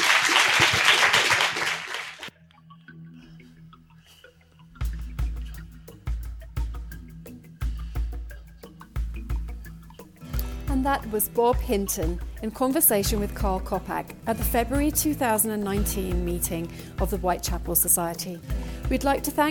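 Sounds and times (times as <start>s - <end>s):
audience applause: 0.0s - 2.3s
music with a steady pulsing bass beat: 2.8s - 19.4s
speech: 10.8s - 19.4s.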